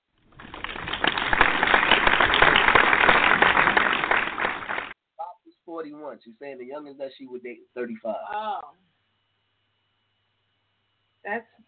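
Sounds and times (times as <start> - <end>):
round of applause: 0.3 - 5.0
speech: 6.1 - 8.8.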